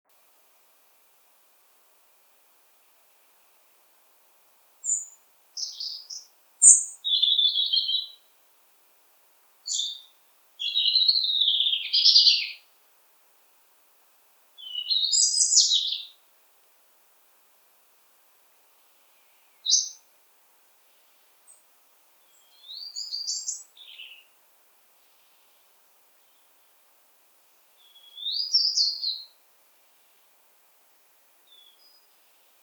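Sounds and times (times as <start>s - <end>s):
European robin singing: 4.8s - 8.3s, 9.6s - 12.7s, 14.6s - 16.2s, 18.9s - 20.1s, 22.2s - 24.4s, 27.8s - 29.4s, 31.4s - 32.6s.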